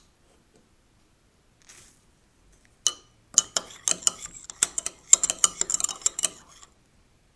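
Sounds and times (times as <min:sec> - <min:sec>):
cup of tea being prepared: 0:02.9 - 0:06.7.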